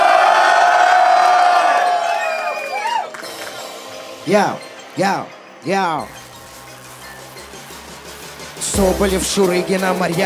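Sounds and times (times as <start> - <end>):
crowd cheering and shouting: 0.0 - 4.6
speech: 4.2 - 6.2, 8.8 - 10.2.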